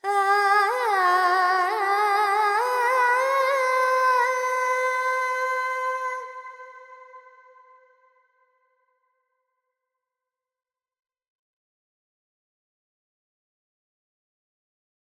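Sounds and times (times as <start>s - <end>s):
Carnatic female alap in raga Panthuvarali: 0.0s - 7.7s.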